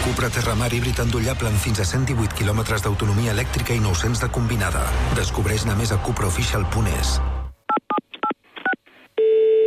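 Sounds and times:
speech: 0.1s - 7.3s
long steady telephone tone: 9.2s - 9.6s.

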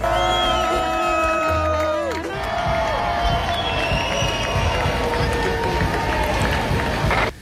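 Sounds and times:
crowd applauding and cheering: 0.0s - 7.4s.

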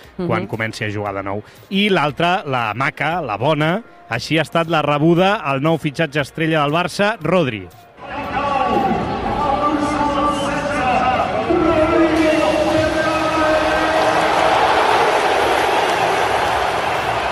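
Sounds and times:
speech: 0.2s - 8.8s
stadium crowd ovation: 8.0s - 17.3s.

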